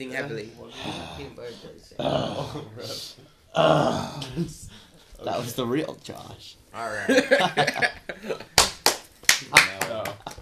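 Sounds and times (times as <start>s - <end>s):
speech: 0.0s - 8.5s
laughter: 6.8s - 8.8s
crisp hand clapping: 8.4s - 10.4s.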